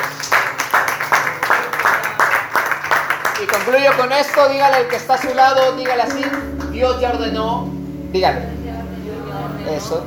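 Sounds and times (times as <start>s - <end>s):
audience applause: 0.0s - 6.8s
faint low hum: 0.3s - 10.0s
speech: 3.4s - 8.6s, 9.7s - 10.0s.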